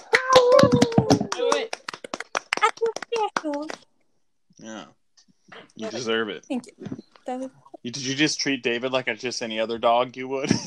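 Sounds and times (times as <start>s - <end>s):
small group clapping hands: 0.0s - 3.9s
speech: 5.8s - 10.6s.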